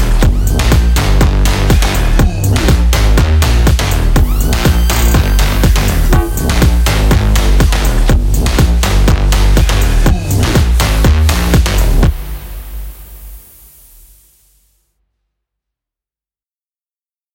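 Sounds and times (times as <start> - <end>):
Brazilian phonk music: 0.0 - 13.8.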